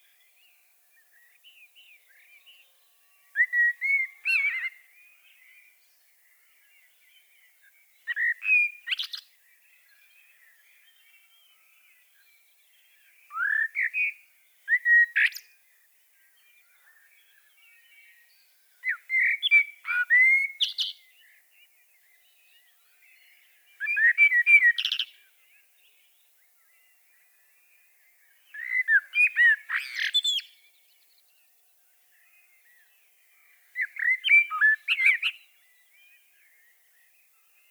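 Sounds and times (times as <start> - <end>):
common blackbird song: 0.0 - 37.6.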